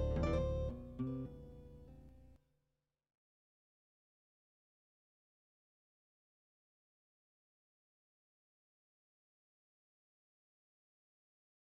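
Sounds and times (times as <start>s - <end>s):
guitar playing a polyrhythm: 0.0s - 2.1s.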